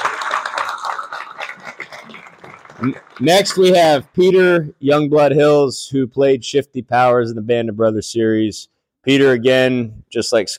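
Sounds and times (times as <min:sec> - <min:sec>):
audience applause: 0:00.0 - 0:04.2
speech: 0:02.8 - 0:10.5.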